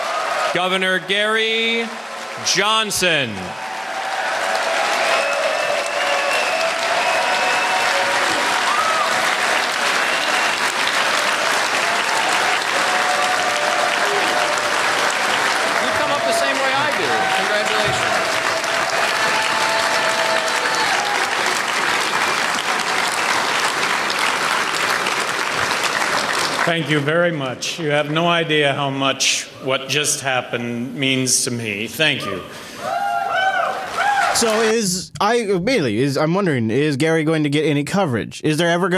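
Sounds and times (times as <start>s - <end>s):
applause from a large crowd: 0.0s - 27.4s, 32.9s - 35.1s
speech: 0.5s - 3.6s, 26.7s - 32.7s, 34.4s - 38.9s
cheers and whistles: 3.5s - 23.6s, 32.8s - 34.7s.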